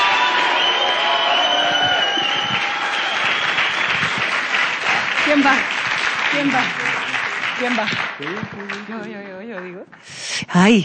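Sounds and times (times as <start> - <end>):
whistles and scattered cheers: 0.0 - 4.6
audience applause: 0.0 - 10.1
speech: 5.3 - 7.0, 7.6 - 10.8.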